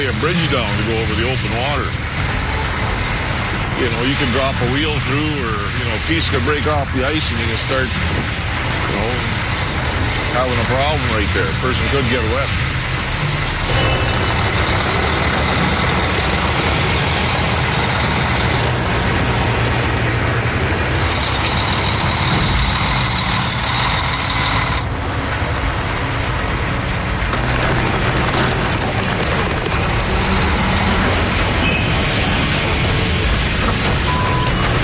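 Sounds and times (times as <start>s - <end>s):
speech: 0.0s - 2.2s, 3.8s - 9.4s, 10.3s - 12.6s
big rig truck with a trailer engine drone: 0.0s - 34.8s.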